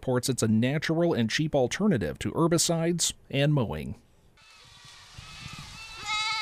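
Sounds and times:
speech: 0.0s - 4.1s
Spanish goats bleating in a field of waist-high vegetation in the Missouri Ozarks: 4.6s - 6.3s.

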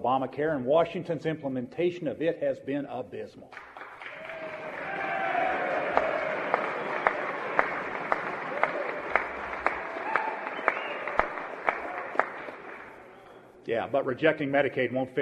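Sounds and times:
speech: 0.0s - 3.8s, 13.7s - 15.1s
crowd applauding in a legislative chamber: 3.6s - 13.4s.

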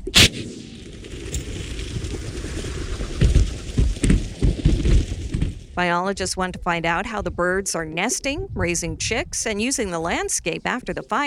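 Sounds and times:
rocket nets firing to catch sage grouse: 0.0s - 5.8s
speech: 5.8s - 11.2s.

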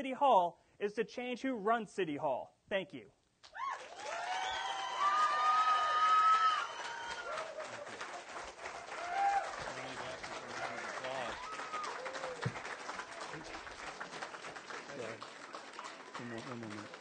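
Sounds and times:
speech: 0.0s - 3.6s, 16.2s - 16.9s
audience cheers and whoops: 3.5s - 8.2s, 8.8s - 9.7s, 10.6s - 12.6s
audience applause: 3.6s - 16.9s.

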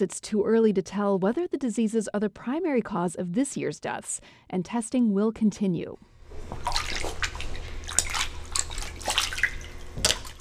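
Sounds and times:
speech: 0.0s - 6.8s
sick seal splashing in a small pool: 6.3s - 10.4s.

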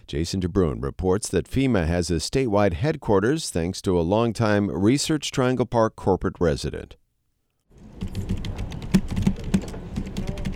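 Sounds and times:
speech: 0.1s - 7.0s
rapid clicking of computer keyboard keys: 8.0s - 10.5s.

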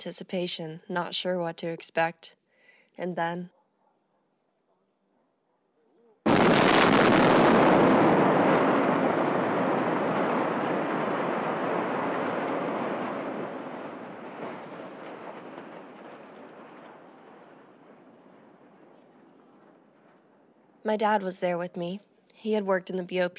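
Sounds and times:
speech: 0.0s - 2.4s, 3.0s - 3.6s, 20.8s - 23.3s
steel plant building implosion demolition: 6.3s - 20.2s.

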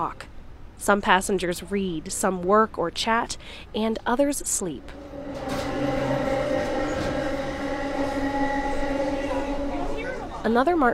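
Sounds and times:
speech: 0.0s - 5.7s, 10.4s - 10.9s
commuter train rolling along the rails: 4.5s - 10.9s.

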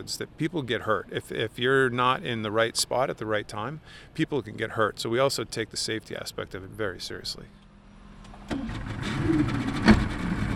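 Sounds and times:
speech: 0.0s - 7.6s, 9.3s - 10.0s
small motorboat engine leaving harbor: 7.8s - 10.5s.

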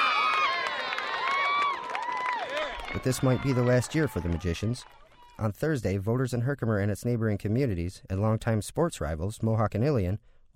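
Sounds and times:
high school football crowd cheering in Herkimer: 0.0s - 5.5s
speech: 2.9s - 10.4s.

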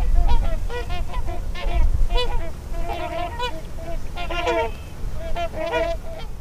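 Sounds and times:
low wind rumble: 0.0s - 6.4s
trumpeter swans honking: 0.0s - 6.4s.

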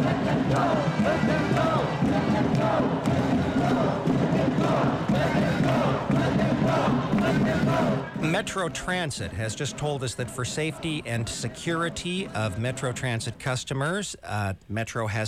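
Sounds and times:
crowd of people screaming: 0.0s - 8.3s
speech: 8.2s - 15.2s.

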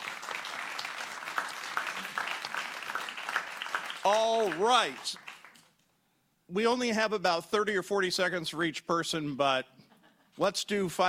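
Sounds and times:
audience applause: 0.0s - 5.7s
speech: 4.0s - 5.3s, 6.5s - 9.8s, 10.4s - 11.0s.

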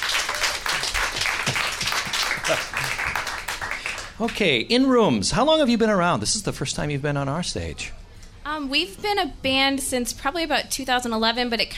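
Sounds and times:
audience applause for a band: 0.0s - 4.5s
speech: 2.5s - 3.0s, 4.2s - 11.7s.

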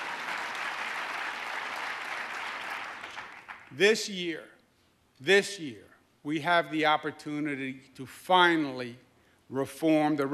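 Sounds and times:
audience applause: 0.0s - 3.7s
speech: 3.7s - 4.5s, 5.2s - 10.3s.

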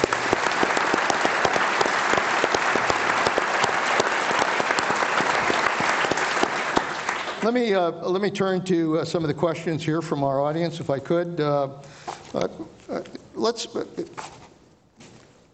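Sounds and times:
audience applause for the sponsors of a political issues forum: 0.0s - 7.7s
speech: 7.5s - 14.4s.

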